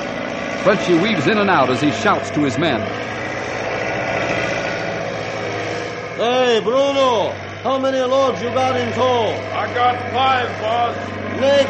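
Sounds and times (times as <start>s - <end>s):
diesel tractor engines running at logging site: 0.0s - 11.6s
speech: 0.6s - 3.2s, 6.2s - 11.6s.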